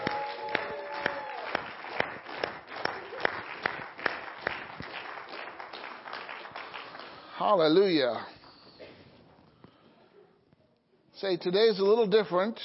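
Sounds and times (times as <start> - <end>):
crowd cheering: 0.0 - 3.8
audience clapping rhythmically: 0.0 - 8.5
speech: 7.4 - 8.3, 11.2 - 12.6.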